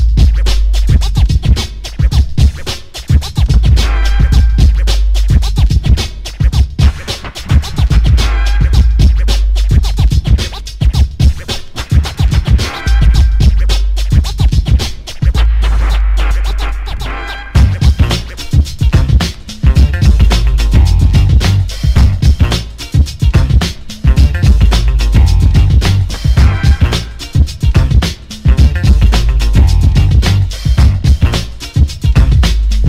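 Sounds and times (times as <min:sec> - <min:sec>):
deep pulsing bass: 0:00.0 - 0:01.6, 0:03.5 - 0:06.0, 0:07.9 - 0:10.4, 0:12.9 - 0:14.8, 0:17.6 - 0:18.3, 0:18.9 - 0:32.8
DJ turntable scratch beat played with the whole hand: 0:00.0 - 0:32.8.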